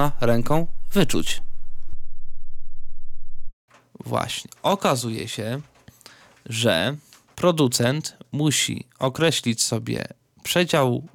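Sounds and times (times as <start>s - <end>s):
speech: 0.0s - 1.5s, 4.0s - 5.7s, 6.4s - 11.1s
8 Hz low-frequency test tone: 0.0s - 3.6s.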